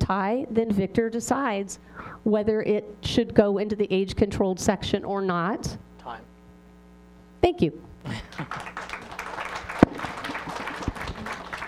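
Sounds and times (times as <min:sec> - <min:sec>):
speech: 0:00.1 - 0:06.3, 0:07.4 - 0:08.7
crowd applause: 0:08.1 - 0:11.6.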